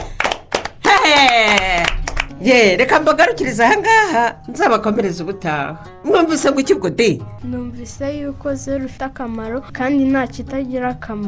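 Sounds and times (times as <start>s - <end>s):
group clapping hands: 0.0s - 3.0s
speech: 2.4s - 11.2s.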